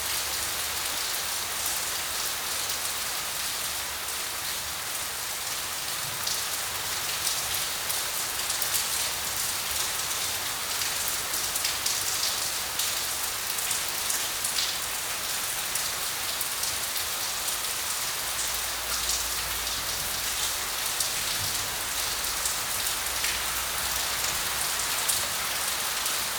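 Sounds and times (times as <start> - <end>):
rain in the street: 0.0 - 26.3.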